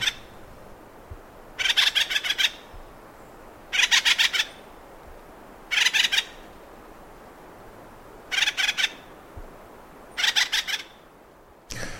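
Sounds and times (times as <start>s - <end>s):
sapsucker woodpecker rattling calls: 0.0s - 0.3s, 1.6s - 2.7s, 3.7s - 4.6s, 5.7s - 6.4s, 8.3s - 9.0s, 10.1s - 11.0s.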